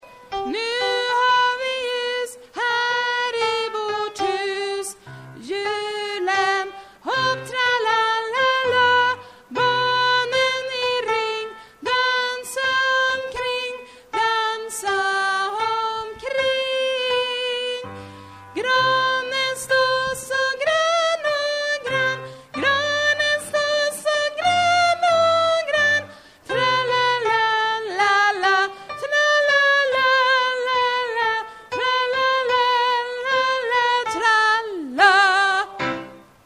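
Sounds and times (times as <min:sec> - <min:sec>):
tenor singing: 0:00.3 - 0:36.4.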